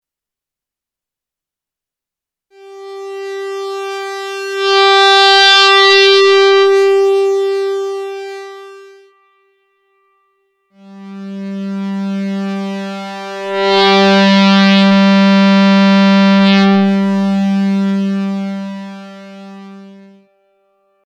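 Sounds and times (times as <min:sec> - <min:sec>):
oscillator with digital saturation, volume turned up by hand: 0:02.6 - 0:09.3, 0:10.8 - 0:20.1.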